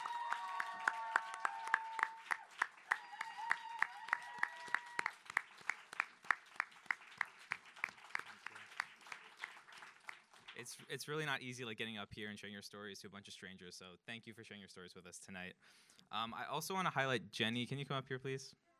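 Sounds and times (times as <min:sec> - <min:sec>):
audience applause: 0:00.0 - 0:10.8
speech: 0:10.6 - 0:18.6.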